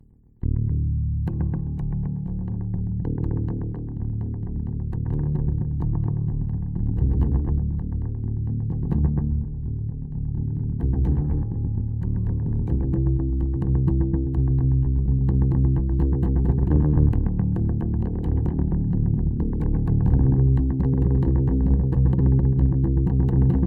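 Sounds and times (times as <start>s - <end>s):
bass run: 0.0s - 23.6s.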